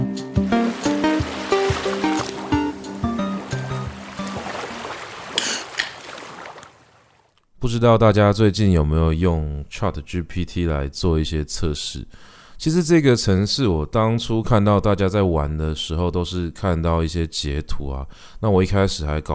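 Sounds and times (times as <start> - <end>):
ocean waves at the seaside: 0.2 - 7.3
speech: 7.7 - 19.3.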